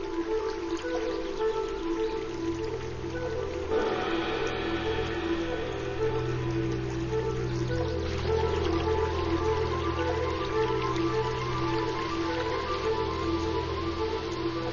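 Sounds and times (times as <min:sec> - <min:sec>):
forest streams swollen after heavy rain rushing: 0:00.0 - 0:14.7.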